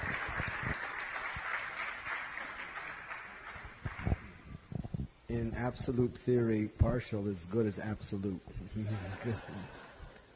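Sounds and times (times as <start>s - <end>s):
audience applause: 0.0s - 4.3s
speech: 5.3s - 9.8s
laughter: 8.7s - 10.3s.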